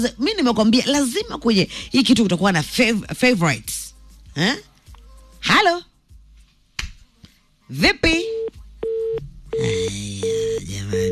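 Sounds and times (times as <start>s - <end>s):
speech: 0.0s - 4.7s, 5.4s - 5.9s, 7.7s - 8.4s
telephone line beeps as a radio call-in connects: 8.3s - 11.0s.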